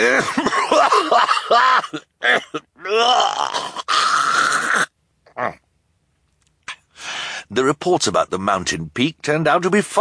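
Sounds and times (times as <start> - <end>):
speech: 0.0 - 0.5, 7.8 - 9.9
coughing fit: 0.0 - 5.6.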